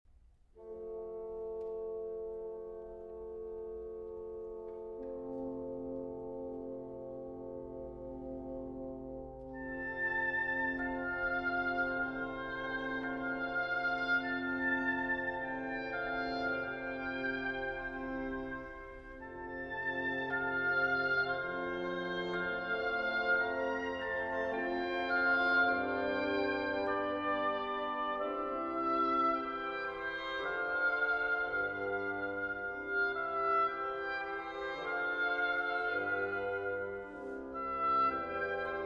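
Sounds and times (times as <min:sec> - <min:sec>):
violin and orchestra: 0:00.5 - 0:38.8.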